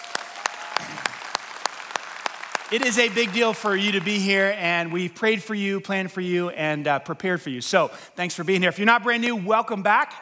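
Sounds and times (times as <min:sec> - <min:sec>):
audience clapping for first-time guests: 0:00.0 - 0:04.9
speech: 0:02.7 - 0:10.1.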